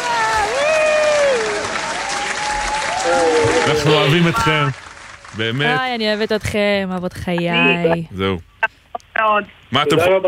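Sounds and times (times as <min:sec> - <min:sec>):
audience applause: 0:00.0 - 0:06.2
speech: 0:03.1 - 0:08.5, 0:09.2 - 0:10.2.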